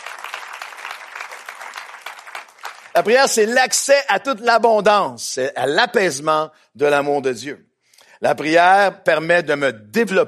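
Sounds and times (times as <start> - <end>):
audience applause: 0.0 - 3.2
speech: 3.0 - 10.2.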